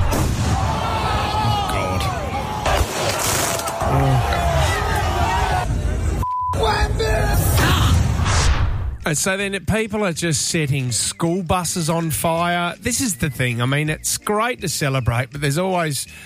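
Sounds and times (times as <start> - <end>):
dense street crowd roaring and cheering in celebration: 0.0 - 8.4
speech: 9.1 - 16.2.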